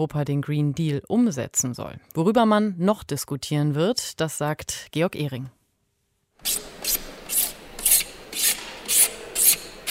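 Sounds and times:
speech: 0.0 - 5.6
filing rasps in Madrid exhibition halls being set up for climate conference: 6.4 - 9.9.

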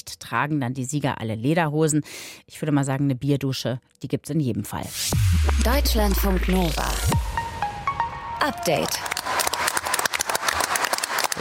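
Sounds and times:
speech: 0.1 - 7.2, 8.4 - 9.0
applause at the Weltnaturschutzkonferenz in Montreal: 8.5 - 11.4.

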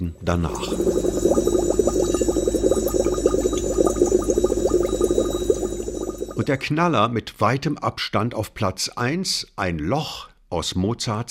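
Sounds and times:
speech: 0.0 - 1.1, 6.4 - 11.2
underwater gurgling of a sunken ship: 0.0 - 6.7.

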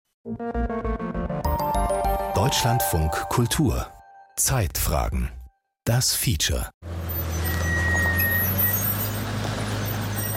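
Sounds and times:
speech: 0.2 - 1.2, 2.5 - 7.0
tank diesel engines roaring: 6.8 - 10.3.

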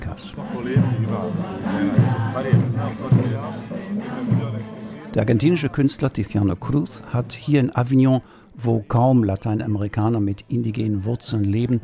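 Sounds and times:
speech: 0.3 - 4.4, 5.2 - 11.8
street crowd gathering for a parade murmuring: 0.4 - 5.7.

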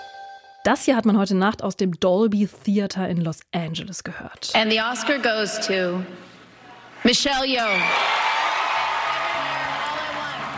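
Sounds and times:
speech: 0.7 - 6.3, 7.0 - 8.2
crowd cheering at award ceremony: 6.6 - 10.5.

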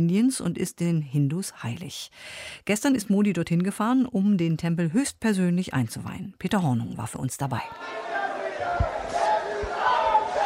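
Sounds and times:
speech: 0.0 - 8.1
crowd singing and cheering for Prime Minister Narendra Modi at a temple inauguration in Varanasi: 7.7 - 10.4.

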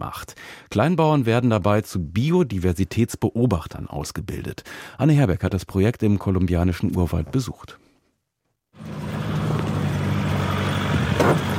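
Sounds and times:
speech: 0.1 - 7.8
four-wheel-drive vehicle on gravel road: 8.8 - 11.5.

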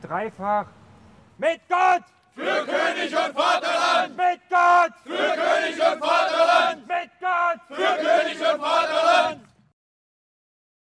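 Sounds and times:
speech: 0.0 - 0.8, 1.4 - 9.4
men shouting battle cries in a battle reenactment: 1.8 - 9.4.

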